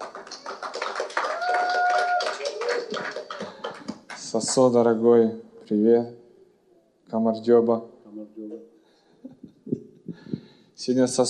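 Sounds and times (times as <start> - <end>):
audience applause: 0.0 - 4.8
speech: 4.3 - 6.2, 7.1 - 9.4, 10.8 - 11.2.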